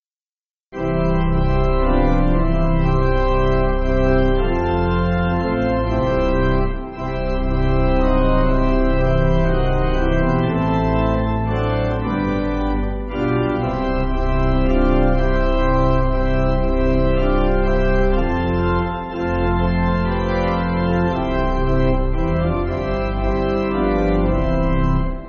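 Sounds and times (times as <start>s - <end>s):
pipe organ church backing music: 0.8s - 25.2s.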